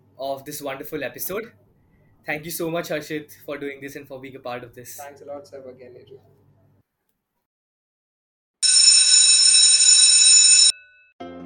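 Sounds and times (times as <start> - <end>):
speech: 0.2 - 1.6, 2.2 - 6.4
college bell ringing: 8.6 - 11.2.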